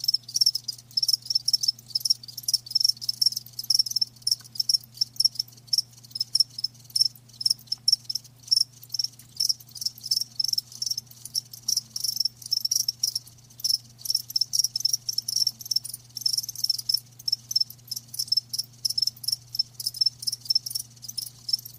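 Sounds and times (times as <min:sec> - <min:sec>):
crickets chirping: 0:00.0 - 0:21.7.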